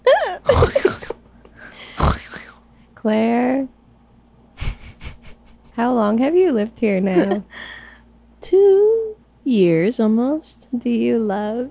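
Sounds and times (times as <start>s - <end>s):
voice imitating backwards demonic snoring: 0.5s - 1.1s, 1.9s - 2.6s
speech: 3.0s - 3.8s, 5.8s - 7.6s, 8.5s - 11.6s.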